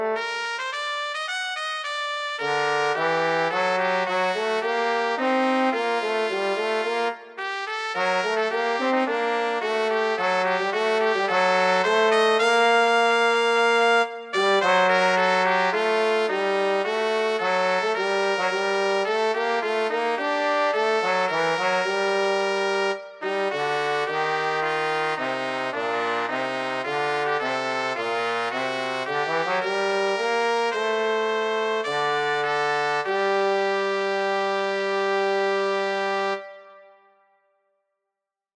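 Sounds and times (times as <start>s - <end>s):
trumpet in a brass ensemble: 0.0s - 37.4s
trombone in a brass ensemble: 2.4s - 36.5s.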